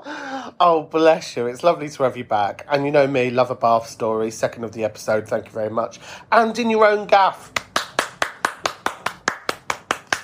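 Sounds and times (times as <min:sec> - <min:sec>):
speech: 0:00.6 - 0:07.7
small round of hand clapping: 0:07.4 - 0:10.2.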